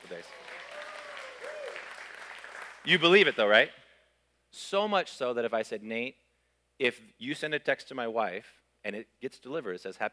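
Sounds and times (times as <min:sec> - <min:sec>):
audience applause: 0:00.0 - 0:02.9
speech: 0:00.1 - 0:00.6, 0:02.8 - 0:03.8, 0:04.5 - 0:06.2, 0:06.8 - 0:10.1.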